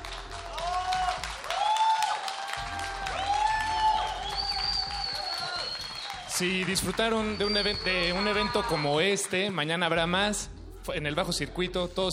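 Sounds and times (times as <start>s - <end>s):
loud audience applause: 0.0s - 9.7s
speech: 6.4s - 12.1s.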